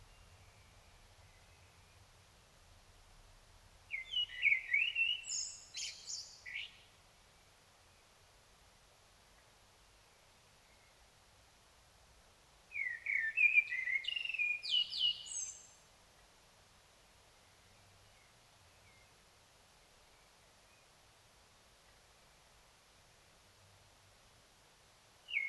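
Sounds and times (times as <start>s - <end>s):
common blackbird singing: 3.9s - 6.8s, 12.8s - 15.8s, 25.3s - 25.4s.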